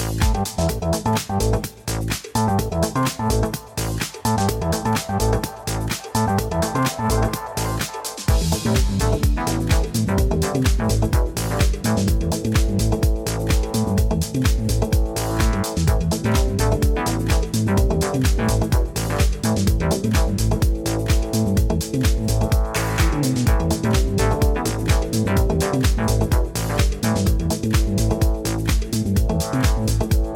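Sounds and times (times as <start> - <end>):
music with a regular beat and deep bass: 0.0 - 30.3.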